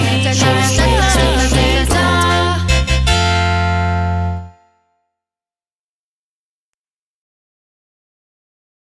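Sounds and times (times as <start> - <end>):
orchestral song in round form: 0.4 - 4.5.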